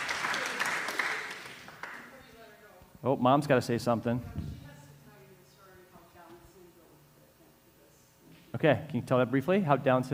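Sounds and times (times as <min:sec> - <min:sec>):
audience applause: 0:00.0 - 0:02.1
speech: 0:03.0 - 0:04.6, 0:08.6 - 0:10.1.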